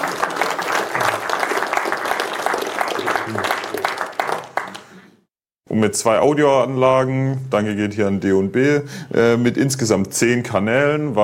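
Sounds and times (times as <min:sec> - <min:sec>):
audience applause: 0:00.0 - 0:05.1
speech: 0:05.8 - 0:11.2.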